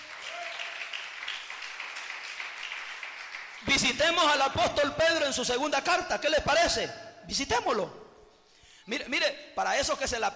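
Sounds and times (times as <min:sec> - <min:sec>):
audience applauding: 0:00.0 - 0:03.9
speech: 0:03.6 - 0:08.0, 0:08.8 - 0:10.3.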